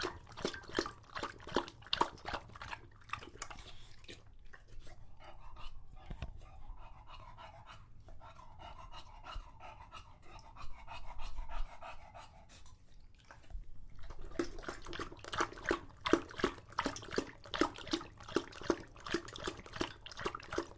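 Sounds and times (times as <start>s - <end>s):
English Bulldog lapping water: 0.0s - 6.2s, 9.8s - 20.7s
English Bulldog panting: 0.0s - 13.5s.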